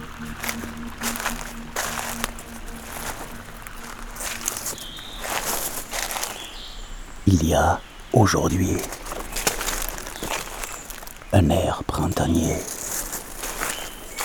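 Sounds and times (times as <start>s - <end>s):
footsteps on dry dead beech leaves: 0.0s - 14.2s
speech: 7.3s - 9.0s, 11.3s - 12.8s.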